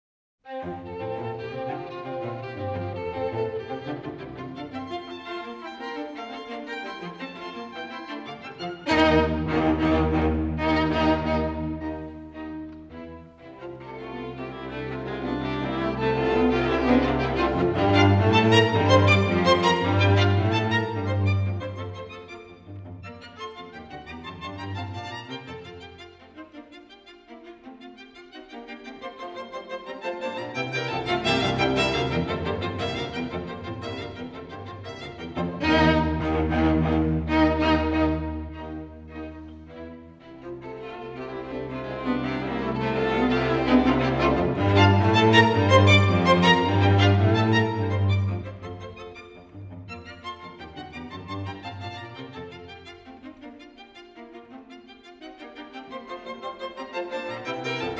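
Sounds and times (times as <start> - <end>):
string quartet playing a lively movement in F major: 0.5 - 57.9.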